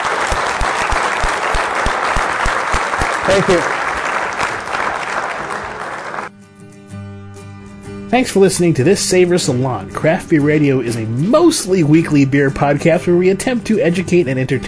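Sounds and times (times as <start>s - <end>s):
audience applause for panelists: 0.0s - 6.3s
speech: 3.2s - 3.8s, 8.1s - 14.6s.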